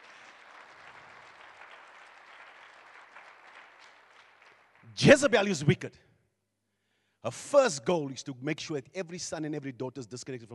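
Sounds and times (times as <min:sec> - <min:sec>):
audience clapping: 0:00.0 - 0:05.3
speech: 0:04.9 - 0:06.1, 0:07.2 - 0:10.5.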